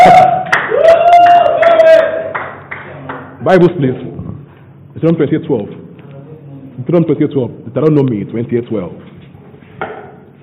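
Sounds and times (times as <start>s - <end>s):
audience clapping: 0.2s - 3.4s
speech: 3.5s - 4.1s, 5.0s - 5.8s, 6.8s - 9.1s.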